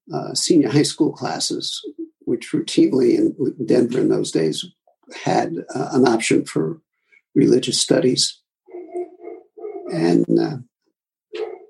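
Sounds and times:
speech: 0.1 - 8.4, 9.9 - 10.7
dog barking: 8.7 - 10.0, 11.3 - 11.6.

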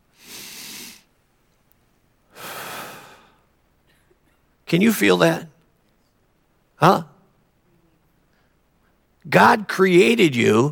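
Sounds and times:
deep breath in and out: 0.1 - 1.1, 2.3 - 3.5
speech: 4.7 - 5.5, 6.8 - 7.1, 9.2 - 10.7.

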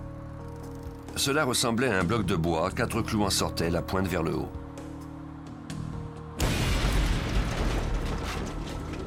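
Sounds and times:
speech: 1.2 - 4.6
bomb explosion: 6.4 - 9.0.

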